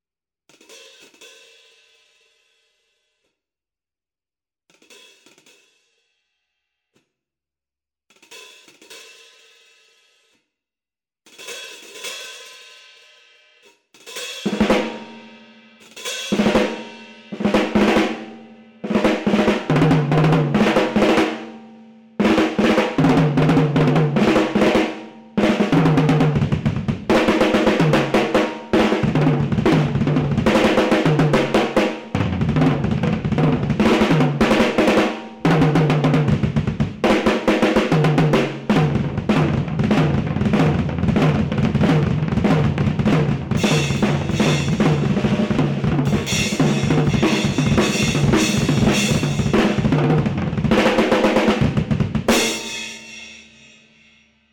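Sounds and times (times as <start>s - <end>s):
drum: 14.0s - 53.8s.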